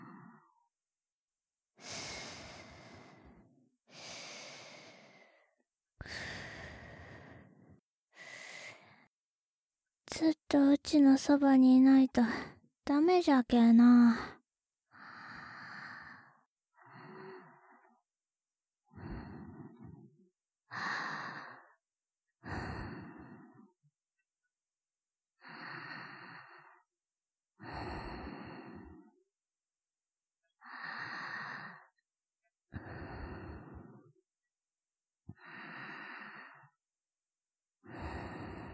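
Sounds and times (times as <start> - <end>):
person breathing in sleep: 1.8 - 9.1, 15.0 - 18.0, 18.9 - 20.0, 20.7 - 21.8, 22.5 - 23.7, 25.4 - 26.9, 27.6 - 29.1, 32.8 - 34.1, 35.3 - 36.8, 37.9 - 38.7
person sleep talking: 10.1 - 14.4.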